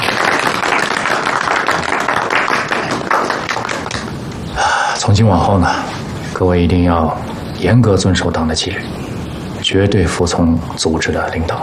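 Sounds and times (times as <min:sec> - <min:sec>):
applause: 0:00.0 - 0:04.2
speech: 0:05.2 - 0:09.0, 0:09.7 - 0:11.6.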